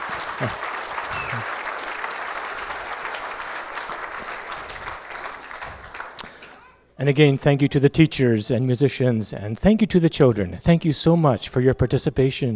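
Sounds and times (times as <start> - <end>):
audience clapping: 0.0 - 6.6
speech: 0.4 - 0.7, 7.0 - 12.5.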